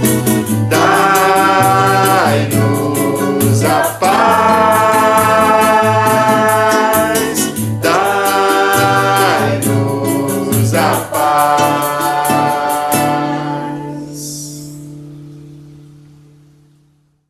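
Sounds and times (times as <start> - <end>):
samba mass music: 0.0 - 13.3.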